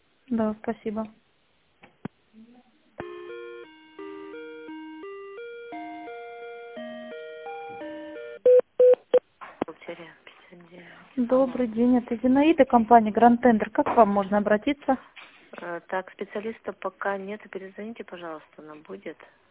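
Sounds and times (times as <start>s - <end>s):
speech: 0.3s - 1.2s, 11.2s - 19.4s
steady electronic phone line tones during a call transfer: 3.0s - 9.2s
sharp loud beeps: 8.4s - 9.2s.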